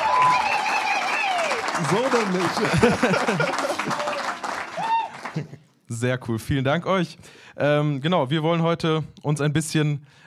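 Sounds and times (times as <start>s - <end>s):
high whoop: 0.0s - 1.7s, 3.6s - 5.4s
live audience applauding: 0.0s - 5.6s
laughter: 1.7s - 5.7s
speech: 1.8s - 4.3s, 5.4s - 10.2s.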